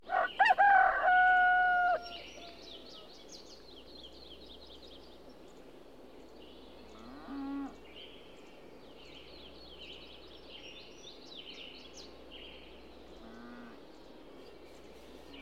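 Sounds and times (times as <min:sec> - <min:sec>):
rooster crowing: 0:00.1 - 0:03.0.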